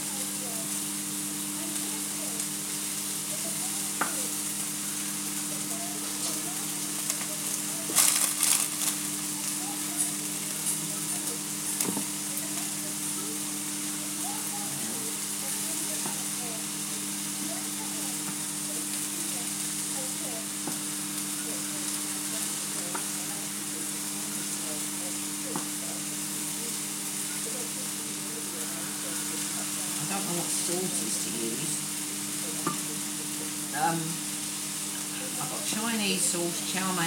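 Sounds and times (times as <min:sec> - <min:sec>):
onion sizzling as it fries in a pan: 0:00.0 - 0:37.0
speech: 0:33.9 - 0:34.2, 0:36.0 - 0:37.0.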